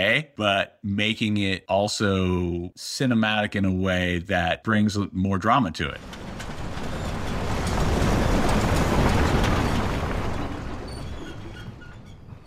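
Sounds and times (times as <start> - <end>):
speech: 0.0 - 6.3
truck tires grinding over gravel: 6.0 - 12.4.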